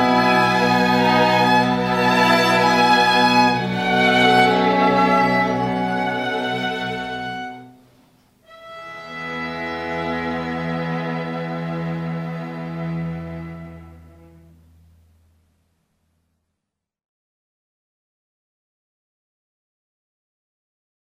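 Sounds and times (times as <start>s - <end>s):
string ensemble: 0.0s - 15.4s.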